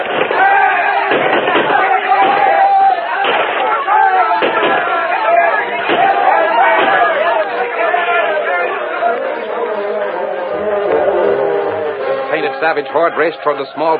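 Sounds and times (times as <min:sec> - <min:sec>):
rifle volley in an old radio drama battle: 0:00.0 - 0:07.4
voices shouting: 0:00.0 - 0:13.9
speech: 0:12.6 - 0:13.9.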